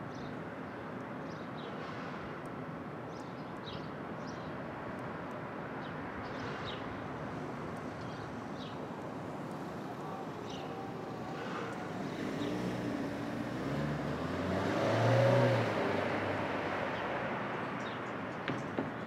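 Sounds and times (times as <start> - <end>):
street traffic at dawn in Brooklyn: 0.0 - 19.0
vehicle passing: 9.1 - 17.0.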